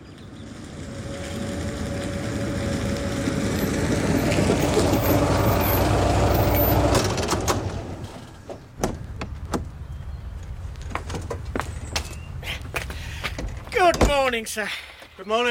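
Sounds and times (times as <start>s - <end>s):
Rolls Royce car engine rumbling as it pulls up: 0.0s - 14.4s
door thunk: 8.8s - 9.7s
speech: 14.3s - 15.4s.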